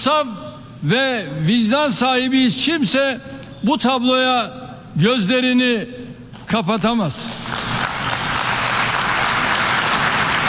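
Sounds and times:
speech: 0:00.0 - 0:07.6
crowd applause interrupting a speech: 0:07.3 - 0:10.4.

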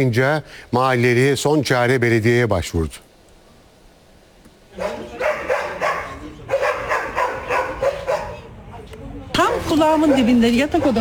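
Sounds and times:
speech: 0:00.0 - 0:03.1, 0:09.7 - 0:10.9
dogs barking at a dog farm between residential buildings in Bursa's Yıldırım district: 0:04.7 - 0:08.6, 0:09.4 - 0:10.9.

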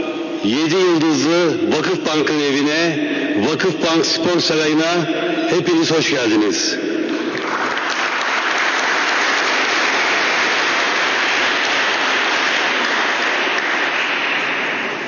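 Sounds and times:
speech: 0:00.4 - 0:07.0
large crowd applause: 0:07.0 - 0:15.0.

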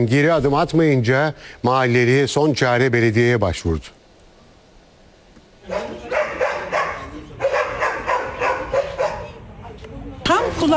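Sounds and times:
speech: 0:00.0 - 0:04.0, 0:05.7 - 0:05.9
dogs barking from a dog farm in a neighbourhood of Yıldırım, Bursa: 0:05.6 - 0:09.5.

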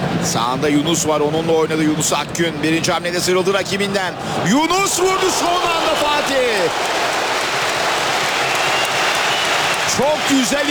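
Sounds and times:
speech: 0:00.2 - 0:07.1, 0:10.0 - 0:10.6
stadium crowd applauding and cheering a young player's shot at a Super Cup football match: 0:04.4 - 0:10.6.

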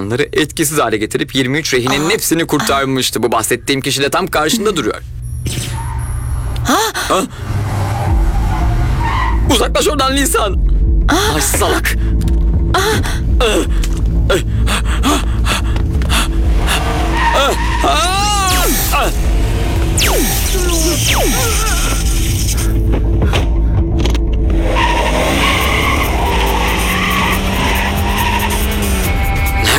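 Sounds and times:
speech: 0:00.0 - 0:05.8, 0:06.7 - 0:07.6, 0:09.5 - 0:15.3, 0:17.4 - 0:18.2, 0:20.9 - 0:21.8
car engine rumble: 0:04.5 - 0:29.7
car tires skidding and squealing: 0:05.2 - 0:06.7, 0:07.3 - 0:09.8, 0:16.4 - 0:22.9, 0:24.5 - 0:29.7.

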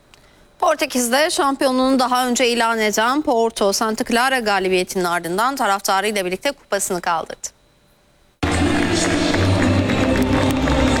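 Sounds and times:
speech: 0:00.7 - 0:07.5
stadium crowd roaring as Porto players walk onto the pitch: 0:08.4 - 0:10.9.

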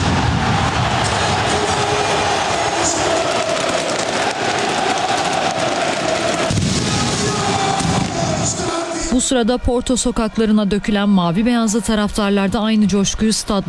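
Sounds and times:
fireworks crackling and popping at a stadium during a league championship celebration: 0:00.0 - 0:08.7
speech: 0:09.2 - 0:13.6.

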